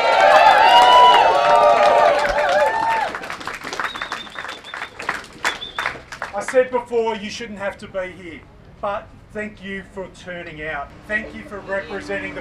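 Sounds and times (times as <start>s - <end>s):
crowd cheers and whoops: 0.0s - 5.7s
crowd clapping: 0.0s - 6.7s
whistle: 3.7s - 6.0s
speech: 6.5s - 12.4s.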